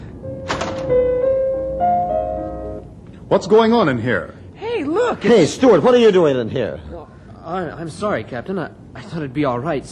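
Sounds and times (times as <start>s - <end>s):
door opening: 0.4s - 1.3s
speech: 3.3s - 9.8s.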